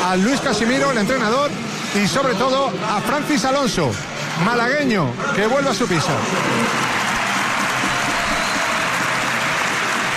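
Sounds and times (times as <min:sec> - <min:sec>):
speech: 0:00.1 - 0:07.0
arena crowd applause: 0:04.2 - 0:10.1.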